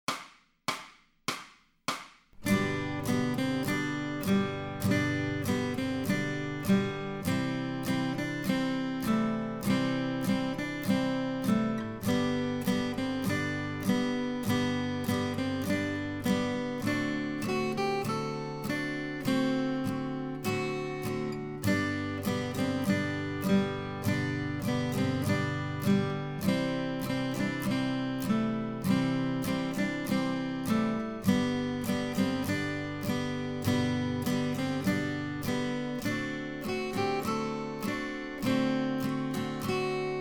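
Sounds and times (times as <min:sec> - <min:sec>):
acoustic guitar accompaniment: 0:02.3 - 0:40.1.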